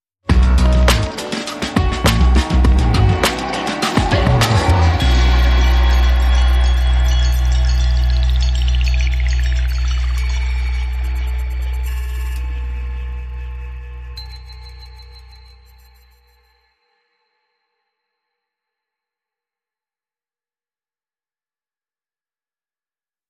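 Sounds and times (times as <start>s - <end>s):
music sting: 0.3s - 14.2s.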